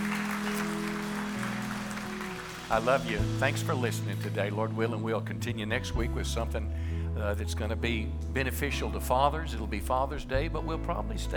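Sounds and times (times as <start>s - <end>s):
audience applause: 0.0s - 3.8s
speech: 2.7s - 11.3s.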